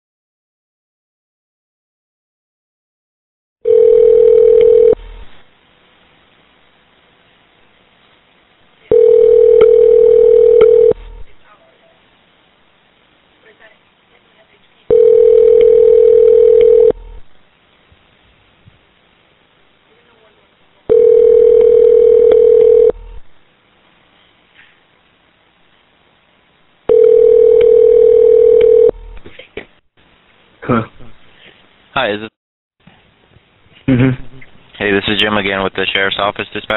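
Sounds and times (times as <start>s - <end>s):
telephone line tone after dropped call: 3.6s - 5.1s, 8.9s - 11.1s, 14.9s - 17.2s, 20.9s - 23.2s, 26.9s - 29.0s
speech: 32.0s - 32.3s, 35.2s - 36.7s.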